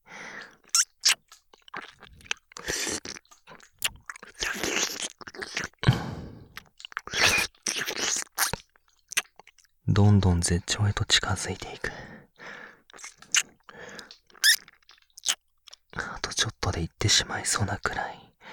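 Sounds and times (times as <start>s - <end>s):
wet ear-licking mouth sounds: 0.4s - 9.7s, 12.9s - 16.6s
speech: 10.0s - 12.0s, 16.8s - 18.4s.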